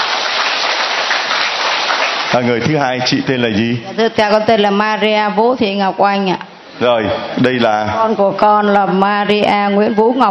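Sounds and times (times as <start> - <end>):
applause: 0.0 - 2.6
speech: 2.3 - 10.2.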